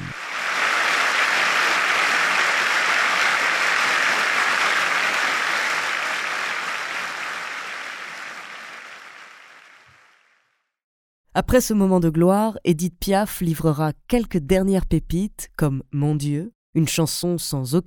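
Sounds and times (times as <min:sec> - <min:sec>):
audience standing ovation applause: 0:00.0 - 0:10.5
speech: 0:11.4 - 0:17.8.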